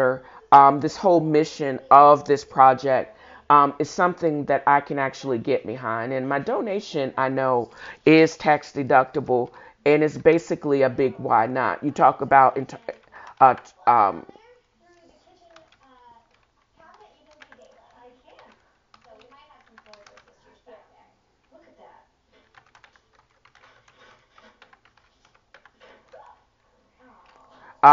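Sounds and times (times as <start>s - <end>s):
speech: 0.0s - 14.4s
typing on a computer keyboard: 12.0s - 14.2s, 14.9s - 20.6s, 22.3s - 27.9s.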